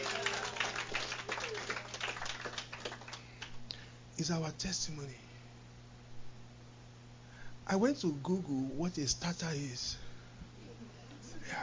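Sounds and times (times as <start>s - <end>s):
audience clapping hands: 0.0s - 3.6s
speech: 4.2s - 5.3s, 7.7s - 10.1s.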